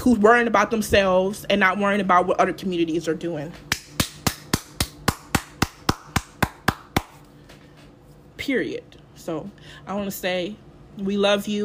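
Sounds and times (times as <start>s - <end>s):
speech: 0.0s - 3.7s, 8.5s - 11.6s
single person clapping hands: 3.7s - 7.2s.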